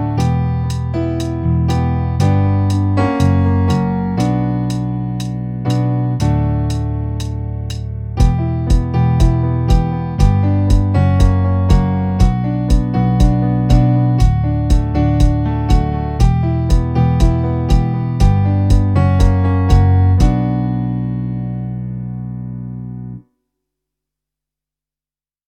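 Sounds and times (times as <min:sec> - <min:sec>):
rhythmic piano clicks on a MIDI pad controller: 0:00.0 - 0:20.8.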